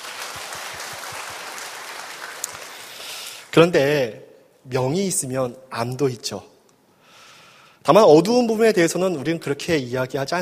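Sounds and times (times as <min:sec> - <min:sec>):
audience applause: 0:00.0 - 0:03.5
speech: 0:03.6 - 0:06.5, 0:07.9 - 0:10.4.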